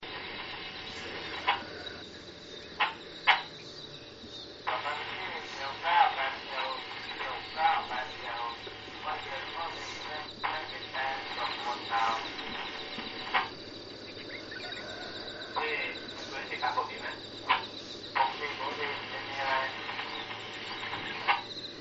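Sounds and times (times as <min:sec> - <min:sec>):
army radio transmission: 0:00.0 - 0:21.8.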